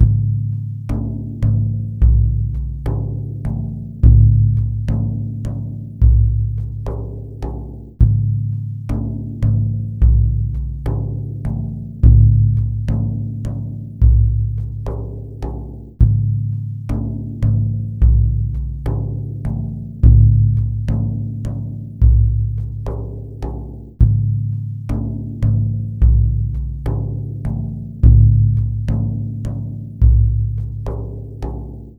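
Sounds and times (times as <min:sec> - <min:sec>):
frame drum: 0:00.0 - 0:31.9.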